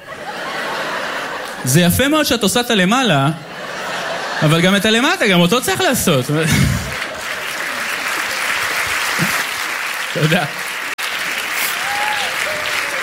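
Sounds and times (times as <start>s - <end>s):
laughter: 0.0s - 2.2s, 3.1s - 9.5s
speech: 1.6s - 3.5s, 4.4s - 6.7s, 10.2s - 10.6s
audience applause: 6.4s - 13.0s.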